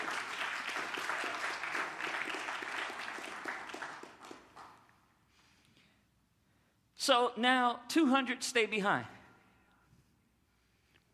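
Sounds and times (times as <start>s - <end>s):
audience clapping: 0.0s - 5.1s
speech: 7.1s - 9.2s.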